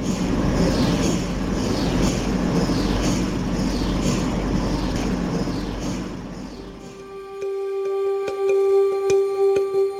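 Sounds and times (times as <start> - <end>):
MRI machine pulsating with whooshing beats: 0.0 - 9.9
faint ticking: 6.6 - 9.9.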